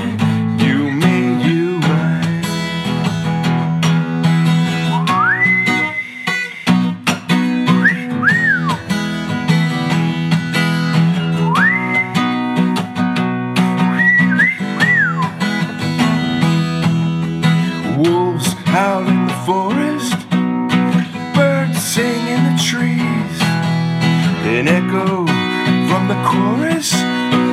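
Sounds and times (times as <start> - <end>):
steady musical backing with a beat: 0.0 - 27.5
person whistling a bright tune: 4.8 - 7.0, 7.7 - 9.0, 11.1 - 12.3, 13.8 - 15.5.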